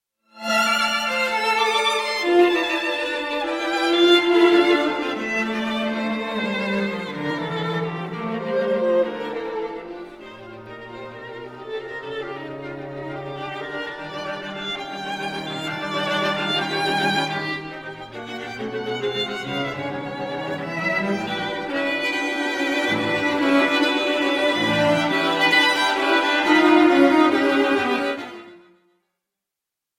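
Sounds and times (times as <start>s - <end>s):
string quartet in G minor first movement: 0.4s - 28.8s.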